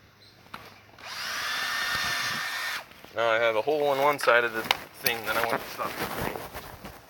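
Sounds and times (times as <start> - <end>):
power drill drilling a hole: 1.0 - 2.9
speech: 3.2 - 6.6.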